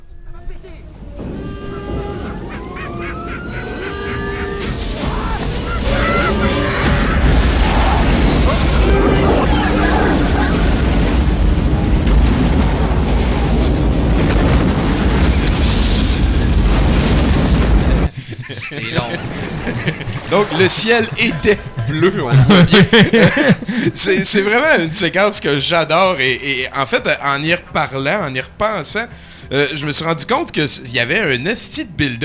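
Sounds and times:
film explosion: 1.2 - 18.1
laughter: 1.8 - 11.4, 17.9 - 24.9
speech: 20.6 - 32.2.

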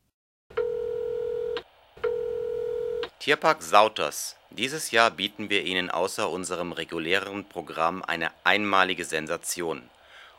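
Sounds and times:
telephone line tones before recorded message: 0.5 - 3.0
speech: 3.2 - 10.0.

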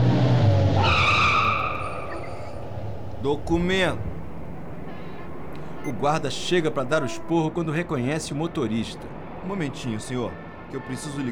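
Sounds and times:
limousine engine low rumbling: 0.0 - 7.3
limousine tires skidding to a stop: 0.0 - 7.3
speech: 3.2 - 4.1, 5.8 - 11.3.

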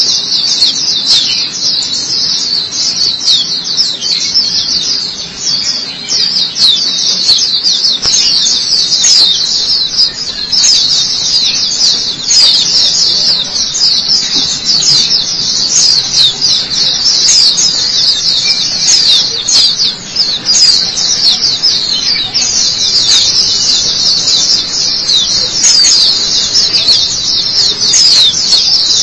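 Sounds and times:
white-eye song: 0.0 - 29.0.

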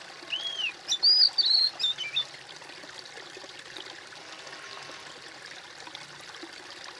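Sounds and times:
bird song: 0.3 - 2.3.

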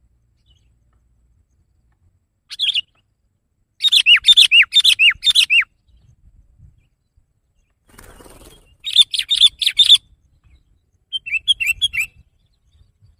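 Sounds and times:
sooty-headed bulbul singing: 2.5 - 6.1, 6.8 - 13.1.

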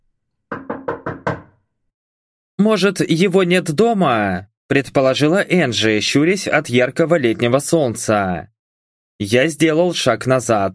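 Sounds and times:
knocking on a house door: 0.5 - 1.6
speech: 2.6 - 8.5, 9.2 - 10.7.

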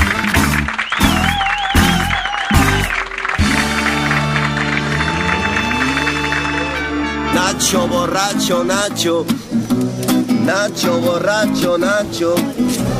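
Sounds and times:
loud sustained applause from a crowd: 0.0 - 7.6
rhythmic thumping bursts: 0.0 - 7.6
wavering whistle-like tones: 0.8 - 3.1
speech: 7.7 - 12.9.

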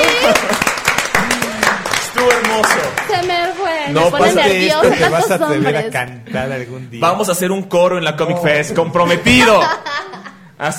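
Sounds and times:
laughter: 0.0 - 1.7, 4.2 - 6.0, 8.8 - 10.5
audience applause: 0.0 - 5.2
speech: 3.1 - 10.7.

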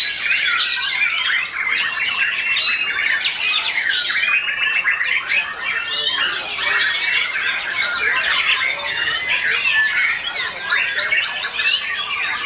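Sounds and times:
Oriental magpie-robin song with chirps, squeaky whistles and harsh notes: 0.0 - 12.4.

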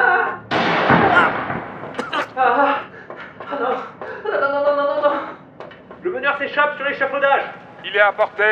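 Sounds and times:
sharp loud gunshot blast: 0.5 - 2.4
man shouting: 1.1 - 1.4
laughter: 1.1 - 5.4
speech: 6.4 - 8.5.

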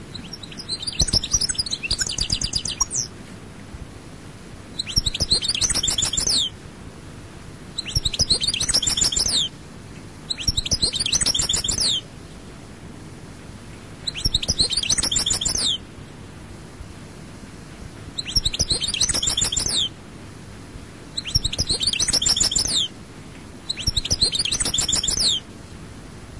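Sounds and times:
European goldfinch song: 0.0 - 3.1, 4.8 - 6.6, 7.7 - 9.5, 10.2 - 12.1, 14.0 - 15.8, 18.1 - 20.0, 21.2 - 23.0, 23.6 - 25.5.

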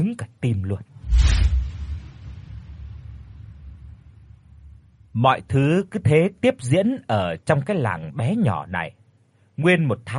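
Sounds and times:
speech: 0.1 - 1.6, 5.2 - 9.0, 9.6 - 10.1
thunder clap from lightning strike: 1.0 - 5.1.

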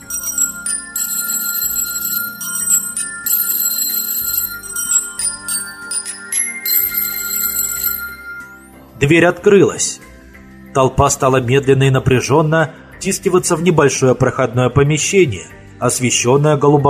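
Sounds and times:
trilling signal bell: 0.0 - 9.0
speech: 9.0 - 10.1, 10.8 - 16.8.

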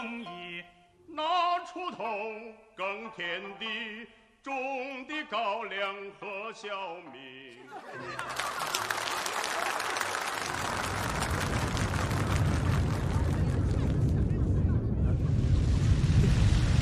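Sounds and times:
speech: 1.7 - 10.8
laughter: 7.5 - 11.2, 12.8 - 15.6
sudden rainstorm: 10.4 - 16.7
thunder: 10.5 - 16.7.

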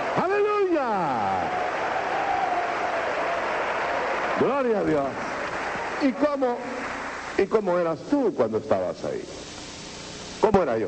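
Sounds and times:
congregation applause during a church service: 0.0 - 7.7
speech: 4.4 - 5.3, 6.0 - 6.8, 7.4 - 9.4, 10.4 - 10.8.

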